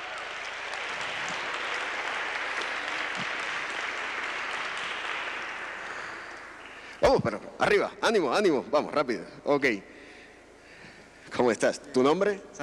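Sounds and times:
crowd applauding: 0.0 - 7.0
speech: 7.1 - 10.0, 11.4 - 12.6.

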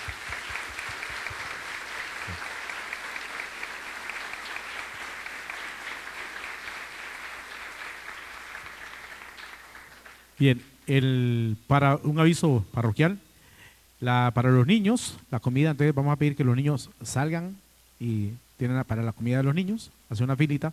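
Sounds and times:
applause: 0.0 - 10.4
speech: 10.4 - 13.2, 14.0 - 20.7.

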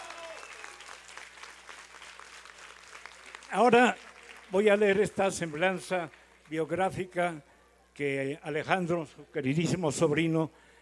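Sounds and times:
audience applause: 0.0 - 6.6
speech: 3.5 - 10.6.

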